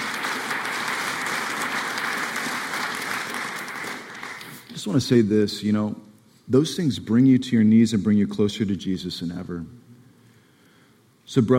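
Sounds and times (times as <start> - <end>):
audience clapping: 0.0 - 5.2
speech: 4.8 - 9.8, 11.3 - 11.5.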